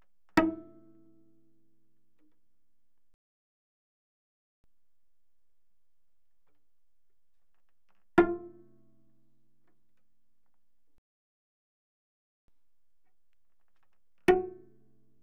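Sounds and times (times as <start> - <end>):
cello pizzicato on the G string, very loud: 0.4 - 1.5, 8.2 - 9.1, 14.2 - 15.2.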